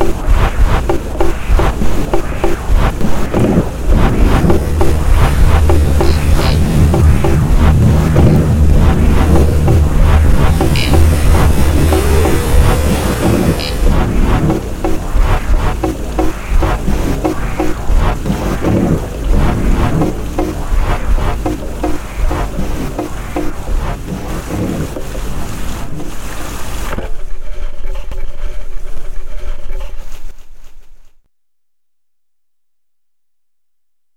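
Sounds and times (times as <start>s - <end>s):
techno music: 0.0s - 24.2s
thunderstorm: 0.0s - 26.4s.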